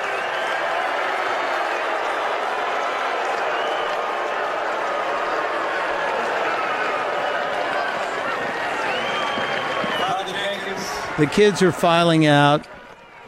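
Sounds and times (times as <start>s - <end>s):
clapping: 0.0s - 10.9s
large crowd roar: 0.0s - 13.2s
speech: 11.2s - 12.7s.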